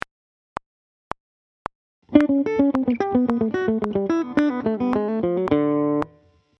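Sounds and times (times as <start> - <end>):
guitar played with hybrid picking: 2.1 - 6.2.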